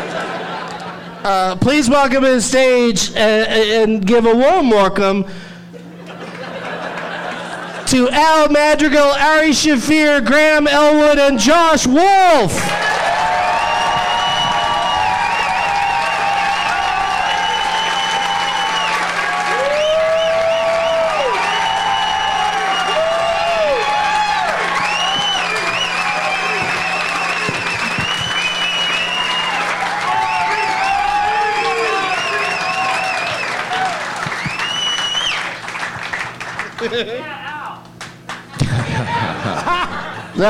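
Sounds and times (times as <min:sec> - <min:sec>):
laughter: 0:00.0 - 0:01.3, 0:05.7 - 0:07.9, 0:36.6 - 0:37.4, 0:38.5 - 0:40.4
speech: 0:01.2 - 0:05.5, 0:07.9 - 0:12.9
large crowd applauding: 0:12.6 - 0:38.5.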